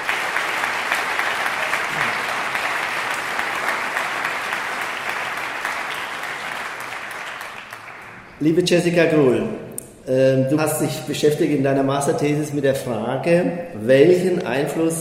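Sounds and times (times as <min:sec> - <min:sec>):
audience applause: 0:00.0 - 0:08.3
speech: 0:08.4 - 0:15.0.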